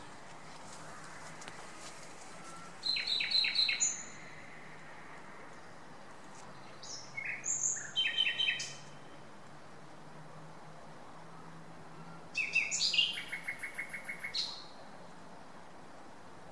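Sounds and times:
Common nightingale song: 0.0 - 9.4, 11.4 - 15.0.

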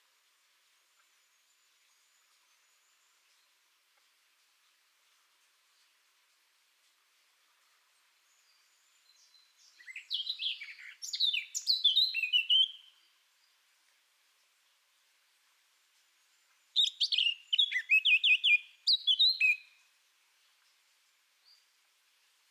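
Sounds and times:
Eurasian blackcap song: 9.8 - 12.8, 16.8 - 19.6.

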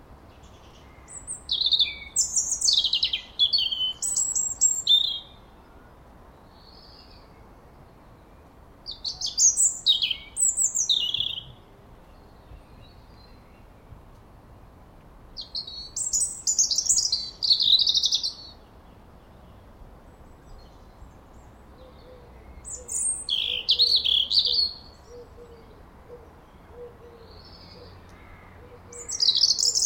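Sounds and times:
European robin (Erithacus rubecula) song: 0.0 - 29.8.

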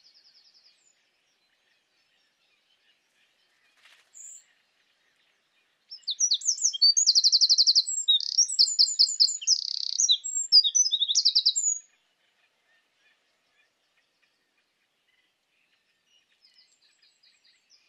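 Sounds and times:
Eurasian wren singing: 5.9 - 11.8.

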